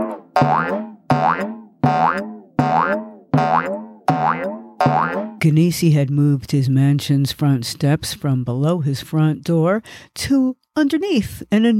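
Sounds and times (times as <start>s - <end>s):
pogo stick boinging: 0.0s - 5.4s
speech: 0.4s - 0.8s, 5.4s - 11.7s.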